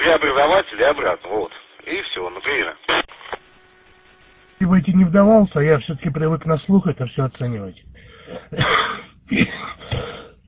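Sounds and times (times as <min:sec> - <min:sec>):
speech: 0:00.4 - 0:03.0, 0:04.6 - 0:08.7
smoker's raspy cough: 0:08.2 - 0:10.3.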